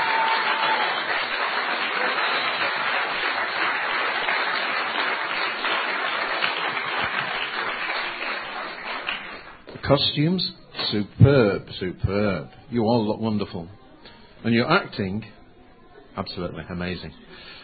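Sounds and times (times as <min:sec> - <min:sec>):
audience applause: 0:00.0 - 0:09.8
speech: 0:09.9 - 0:13.8, 0:14.4 - 0:15.4, 0:16.2 - 0:17.5.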